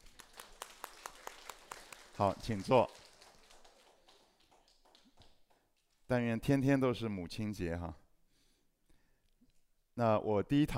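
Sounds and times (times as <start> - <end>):
audience clapping: 0.0 - 6.1
speech: 2.2 - 3.0, 6.1 - 8.0, 10.0 - 10.7.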